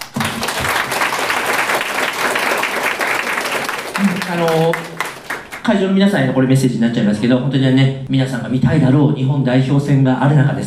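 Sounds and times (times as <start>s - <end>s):
audience applause: 0.0s - 5.7s
speech: 4.3s - 4.9s, 5.7s - 10.6s.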